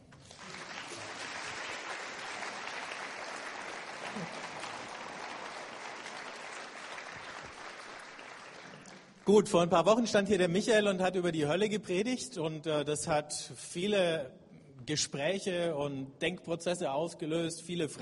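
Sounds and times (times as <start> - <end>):
audience applause for the band: 0.2 - 9.3
speech: 9.3 - 18.0.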